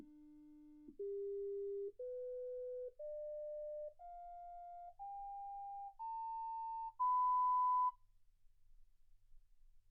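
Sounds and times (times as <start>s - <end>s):
sine tones: 1.0s - 8.0s.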